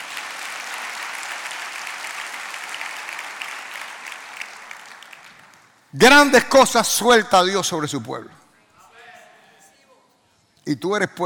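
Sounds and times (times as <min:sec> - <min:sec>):
audience applause: 0:00.0 - 0:05.7
speech: 0:05.9 - 0:08.4, 0:10.7 - 0:11.2.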